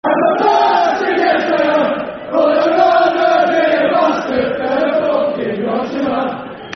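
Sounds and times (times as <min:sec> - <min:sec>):
football crowd chanting soccer songs: 0:00.0 - 0:06.7.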